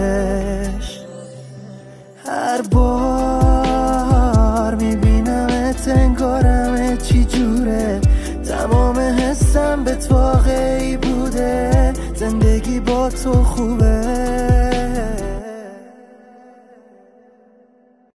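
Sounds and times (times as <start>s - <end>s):
music beat: 2.2s - 15.4s.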